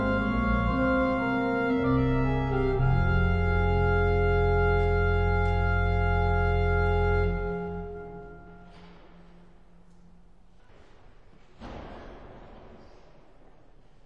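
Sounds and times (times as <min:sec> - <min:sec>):
adagio organ ambience: 0:00.0 - 0:09.4.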